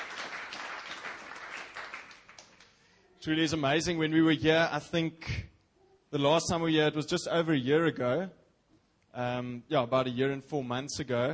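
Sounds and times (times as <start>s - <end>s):
applause from a church congregation at a service: 0.0s - 2.9s
speech: 3.2s - 5.5s, 6.1s - 8.4s, 9.2s - 11.3s.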